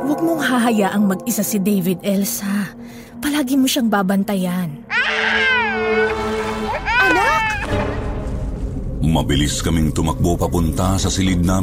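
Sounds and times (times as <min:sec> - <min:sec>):
speech: 0:00.0 - 0:05.5, 0:09.1 - 0:11.6
child wailing: 0:04.9 - 0:07.8.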